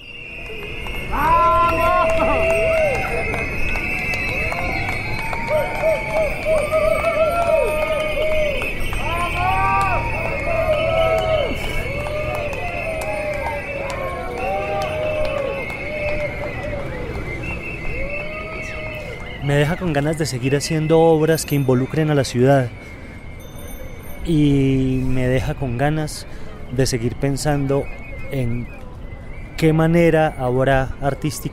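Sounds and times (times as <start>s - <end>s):
crowd applauding arriving cyclists: 0.0s - 24.2s
speech: 19.5s - 22.9s, 24.3s - 28.8s, 29.6s - 31.5s.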